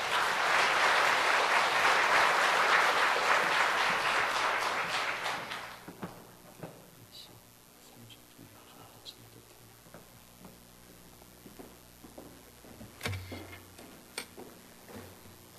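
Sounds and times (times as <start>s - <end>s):
audience applause: 0.0s - 6.1s.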